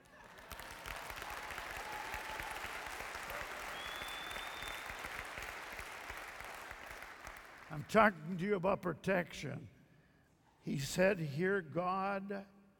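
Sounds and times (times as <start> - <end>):
audience clapping: 0.0 - 8.2
speech: 7.8 - 9.7, 10.6 - 12.5.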